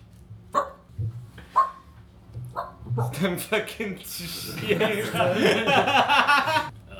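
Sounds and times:
dog barking: 0.5 - 0.9, 1.6 - 1.9, 2.5 - 3.2
dull low thump: 0.9 - 1.4, 2.3 - 3.2
speech: 3.0 - 6.7
laughter: 4.2 - 6.7.

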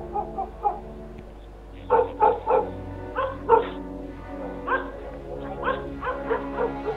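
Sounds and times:
dog barking and yelping running around a garden: 0.0 - 0.9, 1.9 - 3.8, 4.4 - 6.9.

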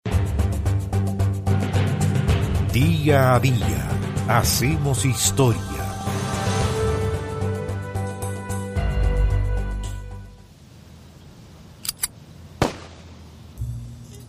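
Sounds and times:
music bed: 0.1 - 10.5
speech: 2.8 - 5.8
small sharp clicks: 11.8 - 12.2
gunshot sound effect: 12.6 - 13.0.

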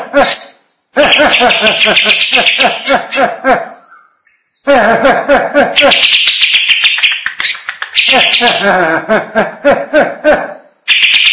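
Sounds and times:
greater green leafbird song: 0.2 - 4.7, 5.8 - 8.7, 10.4 - 11.3
laughter: 1.0 - 3.8, 4.7 - 6.0, 8.1 - 10.6.

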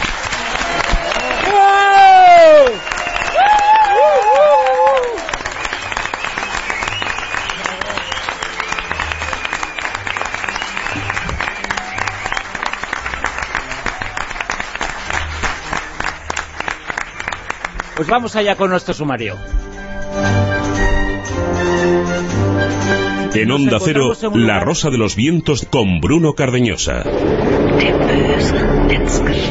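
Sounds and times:
radio studio audience whooping and cheering: 0.0 - 18.1
speech: 18.1 - 20.5, 21.6 - 29.5.

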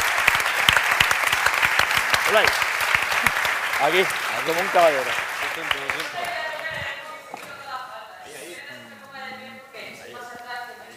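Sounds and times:
audience applause: 0.0 - 6.8
speech: 2.3 - 6.8.

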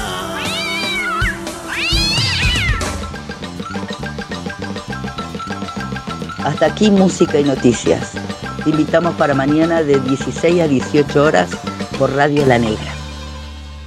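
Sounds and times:
cat meowing sound effect: 0.2 - 3.2
speech: 6.5 - 13.0.

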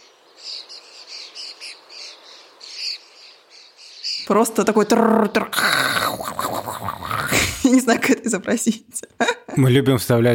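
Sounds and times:
starling's sizzling crackling call: 0.8 - 7.7
speech: 4.3 - 7.0, 7.6 - 10.3.

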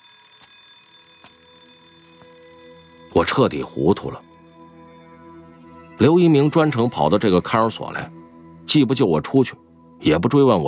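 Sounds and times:
electric bell signalling end of visiting time: 0.0 - 6.3
speech: 3.1 - 4.3, 6.0 - 10.6.

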